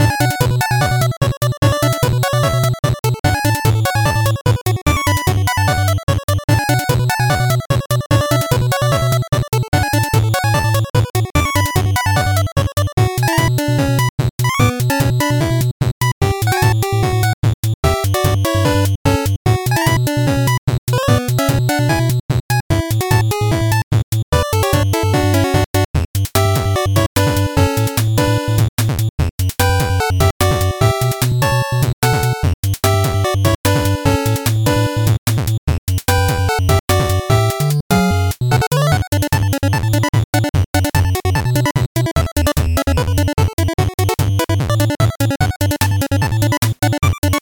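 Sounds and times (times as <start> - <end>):
happy 8-bit music: 0.0 - 47.3.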